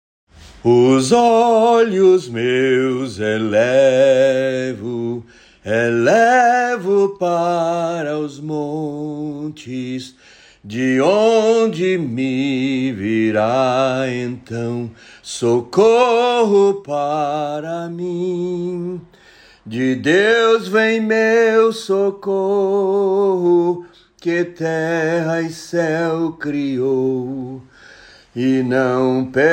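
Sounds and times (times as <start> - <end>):
sung psalm: 0.4 - 29.5.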